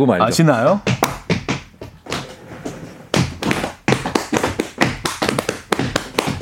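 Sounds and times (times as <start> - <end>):
speech: 0.0 - 1.0
hands slapping legs in rhythm: 0.9 - 2.2, 3.2 - 6.4
hands clapping in rhythm: 3.9 - 6.4.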